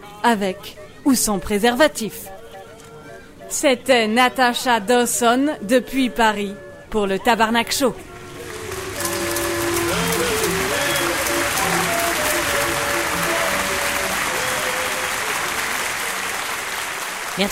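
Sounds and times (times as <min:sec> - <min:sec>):
speech: 0:00.2 - 0:02.4, 0:03.5 - 0:08.1, 0:17.4 - 0:17.5
audience applause: 0:08.1 - 0:17.5.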